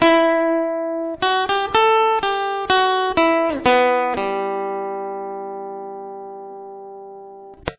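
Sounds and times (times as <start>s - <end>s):
lead guitar: 0.0s - 7.7s.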